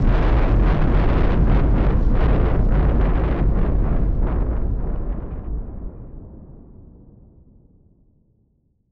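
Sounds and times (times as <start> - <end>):
noise bomb rumbler: 0.0 - 7.1.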